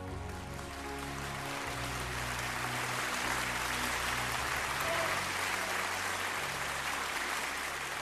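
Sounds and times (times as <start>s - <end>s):
applause: 0.1s - 7.9s.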